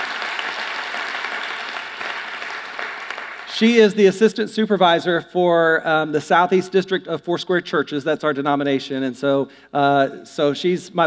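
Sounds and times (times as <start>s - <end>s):
church audience applauding to welcome the speaker's wife: 0.0s - 3.6s
speech: 3.6s - 11.0s.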